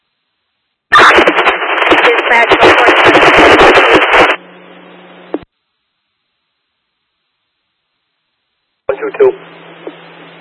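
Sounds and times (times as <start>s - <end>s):
garbled voice in static-laden radio transmission: 0.9s - 4.3s, 8.9s - 9.4s
harsh radio static: 0.9s - 5.5s, 8.9s - 10.3s
speech: 2.3s - 2.6s.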